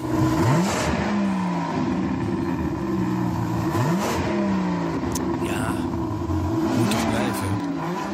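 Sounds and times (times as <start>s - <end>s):
BMW V12 engine revving: 0.0s - 8.1s.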